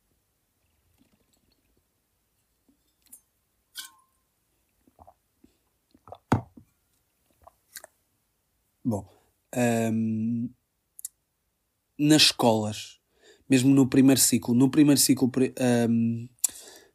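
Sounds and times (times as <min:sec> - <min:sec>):
person drinking water: 0:04.8 - 0:06.3, 0:07.2 - 0:08.0
speech: 0:08.9 - 0:10.6, 0:12.0 - 0:16.6.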